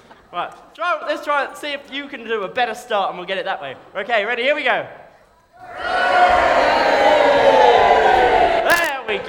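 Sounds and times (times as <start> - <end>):
speech: 0.3 - 5.0
audience shouting and cheering: 6.6 - 8.9.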